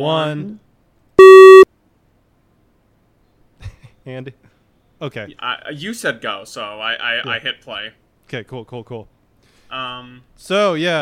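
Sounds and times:
speech: 0:00.0 - 0:00.6, 0:04.0 - 0:09.1, 0:09.7 - 0:11.0
mid-pitched electronic sync beep: 0:01.2 - 0:01.7.

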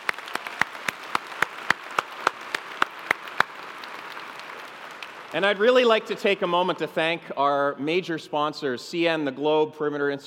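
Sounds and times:
audience applause: 0:00.0 - 0:06.8
speech: 0:05.3 - 0:10.2.

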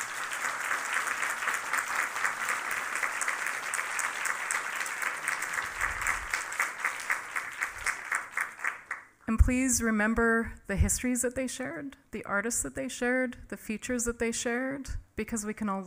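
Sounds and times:
audience applause for panelists: 0:00.0 - 0:09.1
speech: 0:09.3 - 0:15.8.

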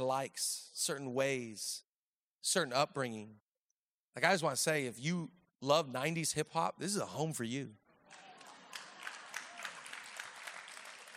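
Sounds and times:
speech: 0:00.0 - 0:03.4, 0:04.2 - 0:07.8
audience clapping: 0:08.0 - 0:11.1.

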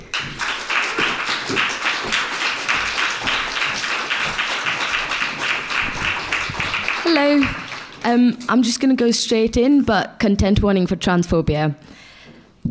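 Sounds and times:
room full of people applauding: 0:00.0 - 0:08.1
speech: 0:07.1 - 0:12.0.

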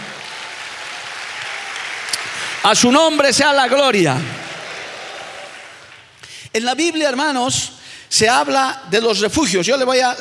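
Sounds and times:
audience applause: 0:00.0 - 0:06.2
speech: 0:02.6 - 0:04.4, 0:06.6 - 0:10.2.

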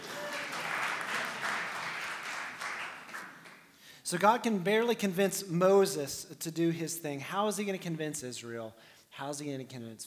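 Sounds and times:
audience applause: 0:00.0 - 0:03.7
speech: 0:04.1 - 0:10.0.

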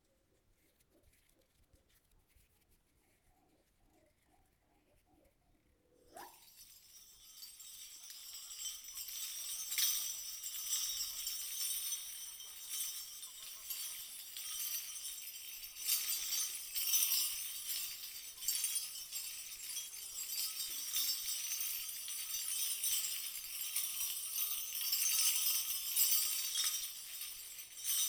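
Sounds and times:
bell-covered reindeer antlers jingling: 0:06.1 - 0:28.0.

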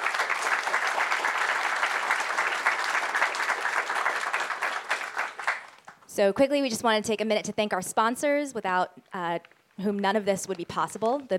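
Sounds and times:
audience applause: 0:00.0 - 0:06.0
speech: 0:06.2 - 0:11.3.

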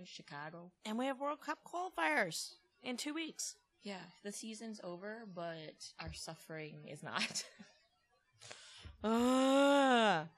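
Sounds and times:
speech: 0:00.0 - 0:07.7, 0:08.4 - 0:10.3
breathy exhale: 0:08.4 - 0:09.0
person groaning imitating a dying whale: 0:09.0 - 0:10.2.

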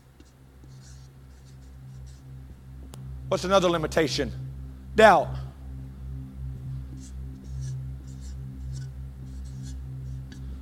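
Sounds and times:
handwriting scratching strokes: 0:00.0 - 0:02.3, 0:06.9 - 0:10.6
steady low hum: 0:00.0 - 0:10.6
speech: 0:03.3 - 0:04.4, 0:05.0 - 0:05.4.

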